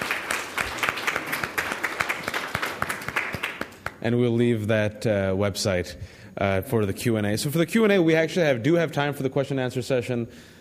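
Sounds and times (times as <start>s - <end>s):
audience applause: 0.0s - 4.0s
speech: 4.0s - 10.5s.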